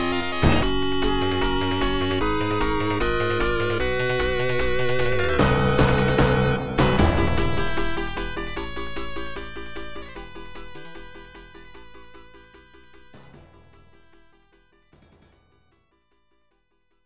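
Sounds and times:
battle music: 0.0 - 10.4.

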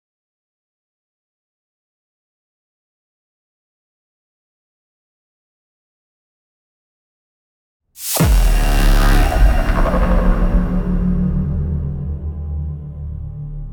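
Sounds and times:
cutscene music: 8.0 - 13.4.

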